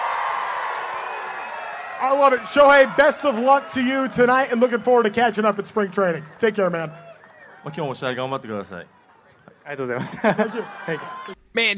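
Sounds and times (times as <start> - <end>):
fans applauding: 0.0 - 11.4
speech: 2.0 - 9.0, 9.6 - 11.7
laughter: 9.8 - 11.4.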